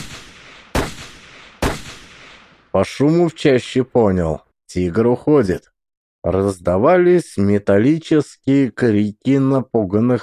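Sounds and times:
berdan rifle shots: 0.0s - 2.6s
speech: 2.8s - 10.2s.

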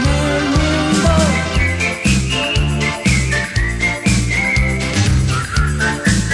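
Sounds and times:
person whistling a melody: 0.0s - 6.3s.

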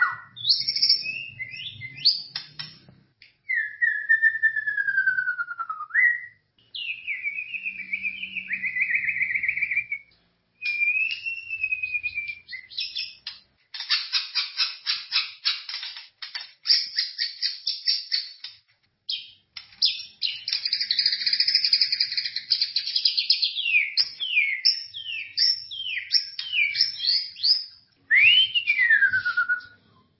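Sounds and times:
white-rumped shama singing: 0.0s - 2.4s, 3.5s - 13.2s, 19.1s - 29.8s.

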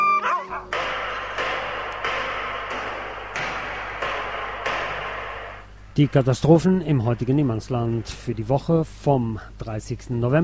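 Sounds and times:
nervous sled dogs barking and yipping: 0.0s - 4.8s
speech: 6.0s - 10.4s.

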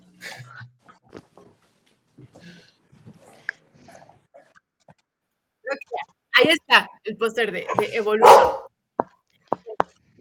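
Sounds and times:
speech: 6.7s - 8.6s
dog snorting and growling: 7.8s - 8.7s.

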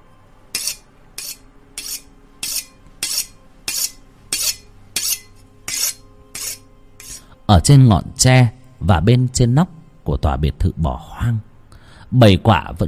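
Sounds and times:
knife being sharpened: 0.5s - 7.3s
speech: 7.5s - 11.5s, 12.1s - 12.8s.

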